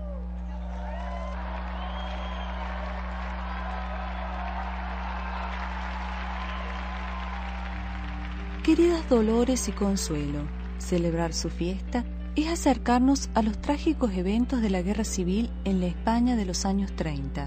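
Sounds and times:
audience applauding: 0:00.0 - 0:11.2
speech: 0:08.7 - 0:17.4.

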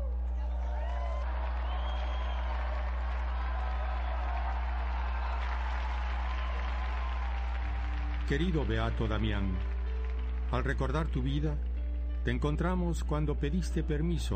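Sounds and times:
scattered cheers: 0:00.0 - 0:10.0
large audience applause: 0:00.0 - 0:11.5
speech: 0:08.3 - 0:09.8, 0:10.5 - 0:14.3.

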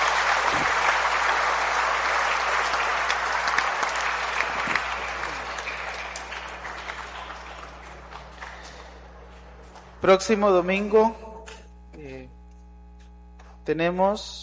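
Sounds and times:
audience applause: 0:00.0 - 0:10.0
speech: 0:10.0 - 0:11.2, 0:13.6 - 0:14.4.

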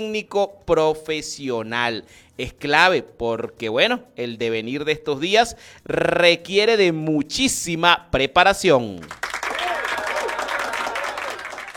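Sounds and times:
speech: 0:00.0 - 0:09.2
audience applause: 0:09.1 - 0:11.7.

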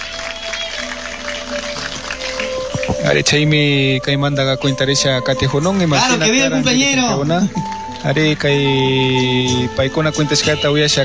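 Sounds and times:
festival audience applause at the San Bartolo event: 0:00.0 - 0:03.8, 0:06.0 - 0:11.0
speech: 0:03.1 - 0:11.0.

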